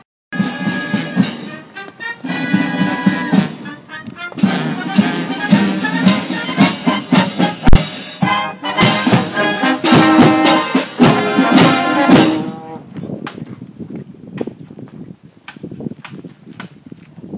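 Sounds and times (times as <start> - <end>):
marching orchestra in Orebro: 0.3 - 12.9.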